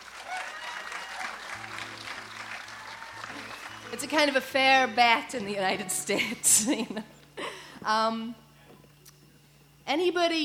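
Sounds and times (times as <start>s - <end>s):
audience clapping: 0.0s - 4.6s
speech: 3.9s - 7.2s, 7.8s - 8.4s, 9.9s - 10.4s.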